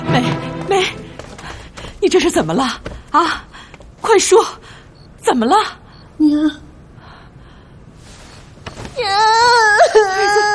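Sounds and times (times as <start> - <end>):
speech: 0.2 - 1.0, 2.0 - 3.4, 4.0 - 4.6, 5.2 - 6.6
girl crying: 9.0 - 10.5.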